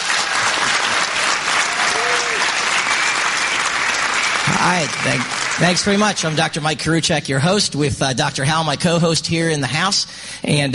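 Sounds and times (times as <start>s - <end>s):
studio audience applause at a medical talk show: 0.0s - 6.6s
speech: 4.6s - 10.7s.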